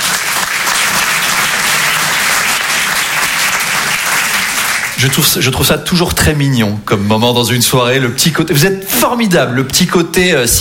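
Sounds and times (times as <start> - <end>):
audience applause: 0.0 - 5.2
speech: 5.0 - 10.5.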